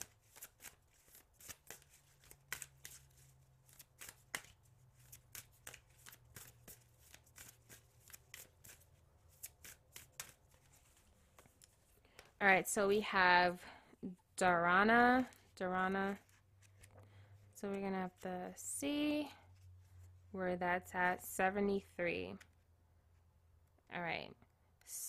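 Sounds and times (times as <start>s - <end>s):
playing cards shuffling and snapping: 0.0s - 12.3s
speech: 12.4s - 16.2s, 17.6s - 19.4s, 20.4s - 22.5s, 24.0s - 25.0s.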